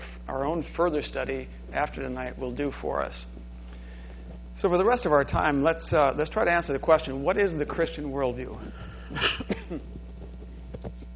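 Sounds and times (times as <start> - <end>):
speech: 0.6 - 3.4, 4.6 - 9.9
person coughing: 9.0 - 9.9.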